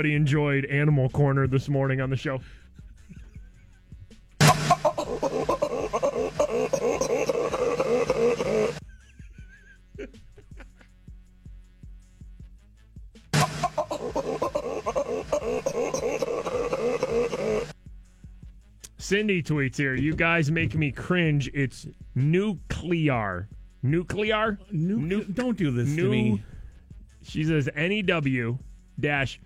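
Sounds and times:
speech: 0.0s - 2.6s, 19.1s - 26.5s, 27.2s - 29.4s
laughter: 2.8s - 3.8s, 4.4s - 10.9s, 13.4s - 17.7s, 25.7s - 26.4s
baboon mating calls: 4.4s - 8.8s, 13.4s - 17.7s.

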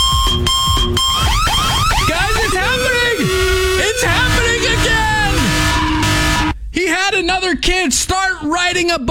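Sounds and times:
loud electronic alarm with pulsing beeps and rising whoops: 0.0s - 6.6s
speech: 7.5s - 9.0s.

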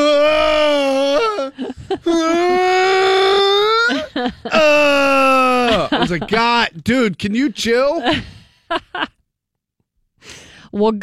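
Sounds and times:
person imitating aggressive moaning of uphill runner: 0.0s - 6.0s
laughter: 1.2s - 3.0s, 3.6s - 6.8s, 7.6s - 9.2s
speech: 6.1s - 9.2s, 10.2s - 11.0s
breathy gasps: 10.2s - 10.7s.

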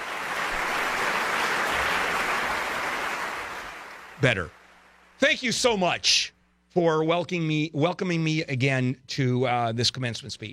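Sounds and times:
applause sound effect: 0.0s - 5.1s
speech: 4.2s - 4.6s, 5.2s - 10.5s.

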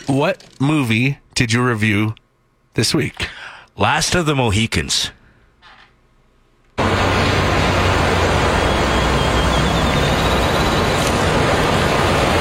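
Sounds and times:
speech: 0.1s - 2.2s, 2.8s - 5.2s
ocean noises: 6.8s - 12.3s.

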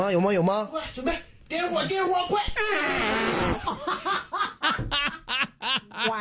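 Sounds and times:
speech: 0.0s - 4.9s, 6.0s - 6.1s
loud buzzy fart in played audio: 2.6s - 3.8s
breathy bursts of laughter: 3.6s - 6.1s.

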